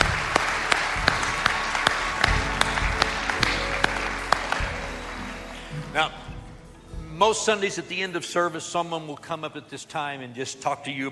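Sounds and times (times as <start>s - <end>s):
church congregation clapping to welcome new believers during a service: 0.0s - 6.6s
speech: 6.0s - 6.2s, 7.2s - 11.0s.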